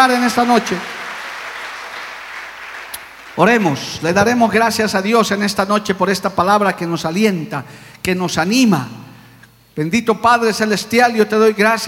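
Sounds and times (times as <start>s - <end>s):
speech: 0.0s - 1.0s, 3.4s - 9.0s, 9.8s - 11.8s
crowd applauding: 0.0s - 4.4s.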